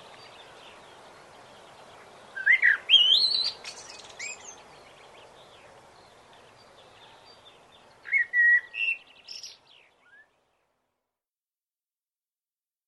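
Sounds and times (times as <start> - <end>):
blackbird singing: 1.6 - 10.3.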